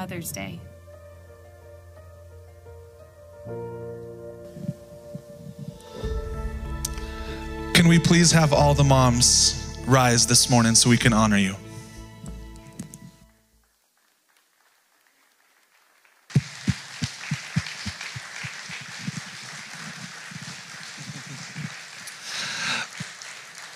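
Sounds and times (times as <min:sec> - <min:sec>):
speech: 0:00.0 - 0:00.8, 0:03.4 - 0:03.8, 0:07.8 - 0:11.6
crowd applauding: 0:13.6 - 0:23.7.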